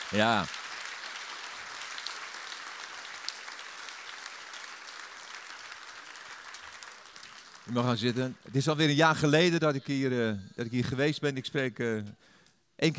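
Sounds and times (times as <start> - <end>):
audience applause: 0.0 - 8.4
speech: 0.1 - 0.6, 7.7 - 12.9.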